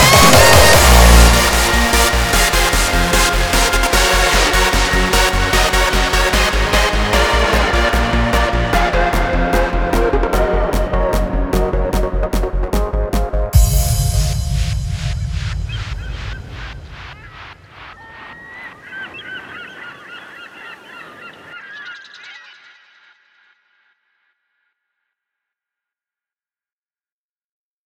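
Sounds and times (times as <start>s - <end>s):
hardstyle music: 0.0s - 17.9s.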